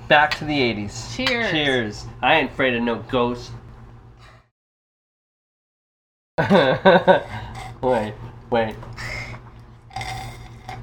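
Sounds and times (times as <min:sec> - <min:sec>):
speech: 0:00.1 - 0:03.6, 0:06.4 - 0:09.1
slurping a drink: 0:09.2 - 0:10.8.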